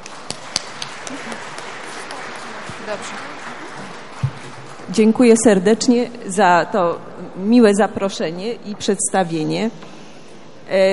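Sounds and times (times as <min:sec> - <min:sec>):
applause welcoming a professor of medical sciences for a lecture: 0:00.0 - 0:05.4
speech: 0:02.9 - 0:03.5, 0:04.9 - 0:09.9, 0:10.7 - 0:10.9.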